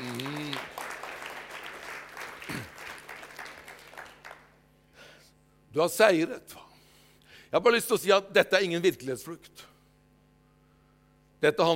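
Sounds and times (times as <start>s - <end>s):
crowd applauding: 0.0s - 4.6s
speech: 5.8s - 6.6s, 7.5s - 9.6s, 11.4s - 11.7s.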